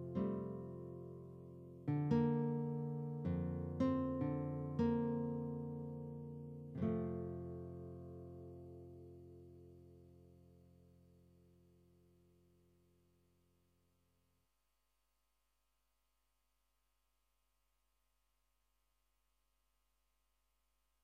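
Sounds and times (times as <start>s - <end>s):
guitar: 0.0s - 13.1s.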